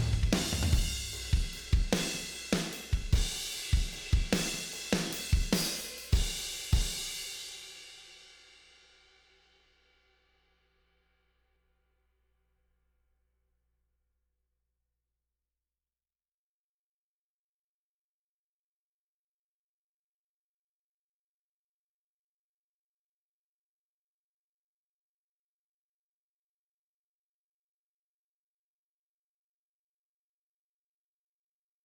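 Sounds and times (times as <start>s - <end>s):
drums: 0.0s - 9.6s.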